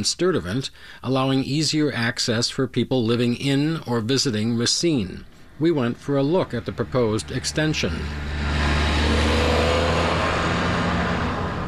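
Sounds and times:
speech: 0.0 - 8.6
farm tractor engine droning on a paved road: 4.4 - 11.6
tractor tire and road noise: 4.4 - 11.6.

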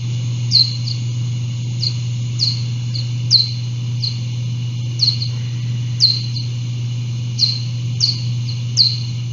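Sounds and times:
little brown bat echolocation slowed down: 0.0 - 9.3
low hum: 0.0 - 9.3.

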